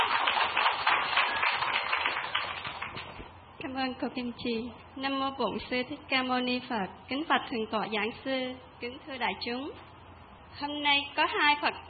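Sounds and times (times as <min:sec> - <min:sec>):
audience applause: 0:00.0 - 0:03.1
speech: 0:03.8 - 0:09.9, 0:10.6 - 0:11.8.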